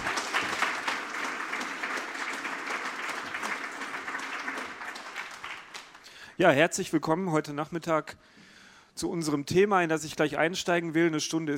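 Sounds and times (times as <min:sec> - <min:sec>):
audience applause: 0:00.0 - 0:06.2
speech: 0:06.4 - 0:08.4, 0:09.0 - 0:11.5.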